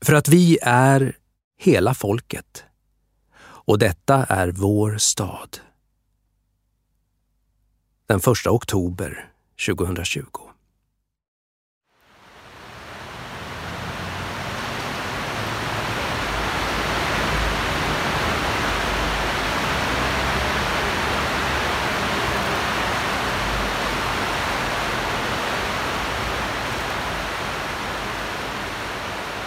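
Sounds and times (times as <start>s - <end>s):
speech: 0.0s - 2.7s, 3.7s - 5.7s, 8.1s - 10.5s
river flowing through brick arches under Leeds railway station: 12.0s - 29.4s.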